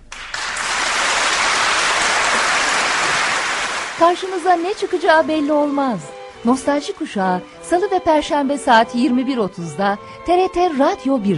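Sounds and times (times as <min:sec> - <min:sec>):
audience applause: 0:00.0 - 0:06.2
speech: 0:04.0 - 0:11.3.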